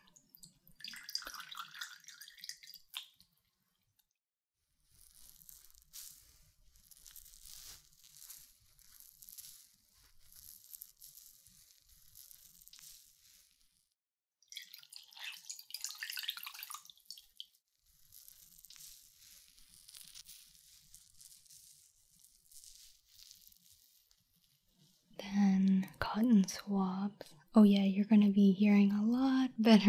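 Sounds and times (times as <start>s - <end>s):
warm water dripping and trickling for ear cleaning: 0.0s - 4.1s, 14.4s - 17.6s
speech: 26.4s - 29.8s.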